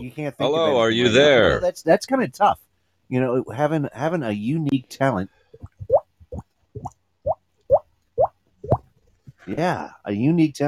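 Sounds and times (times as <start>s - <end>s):
speech: 0.0s - 5.7s, 9.5s - 10.6s
voice imitating a water drip with plopping mouth pops: 5.5s - 9.0s.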